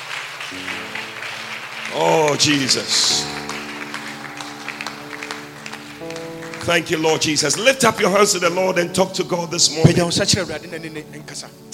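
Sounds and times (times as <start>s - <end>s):
audience clapping: 0.0s - 8.5s
speech: 0.5s - 0.8s, 1.9s - 3.4s, 6.6s - 11.7s.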